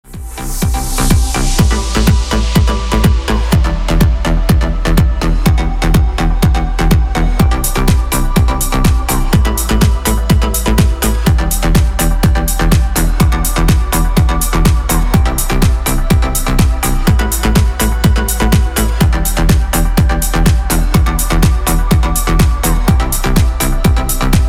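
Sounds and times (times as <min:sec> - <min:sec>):
instrumental music: 0:00.0 - 0:24.4.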